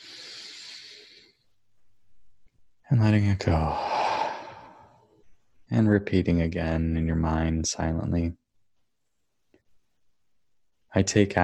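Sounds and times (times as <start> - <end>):
deep breath drawn in during meditation: 0.0 - 1.5, 3.7 - 5.1
speech: 2.9 - 3.9, 5.7 - 8.4, 10.9 - 11.4.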